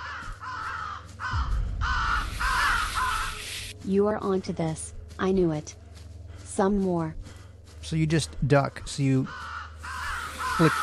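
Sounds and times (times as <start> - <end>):
ravens cawing: 0.0 - 3.7, 9.2 - 10.8
speech: 3.9 - 5.8, 6.6 - 7.2, 7.9 - 9.4, 10.6 - 10.8.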